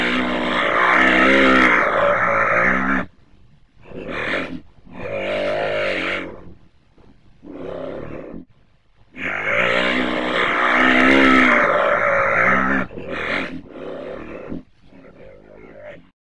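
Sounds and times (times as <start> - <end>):
red brocket call: 0.0 - 3.1, 3.9 - 6.5, 9.2 - 16.0.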